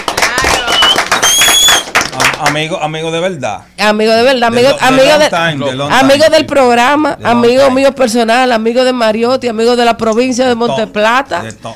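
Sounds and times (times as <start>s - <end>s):
crowd applause: 0.0s - 2.6s
shrill whistles: 0.5s - 2.0s
speech: 2.5s - 11.7s.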